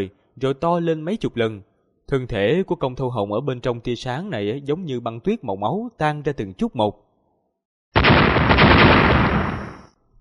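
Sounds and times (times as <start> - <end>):
speech: 0.0 - 7.0
loud explosive boom with crackling roar: 8.0 - 9.9.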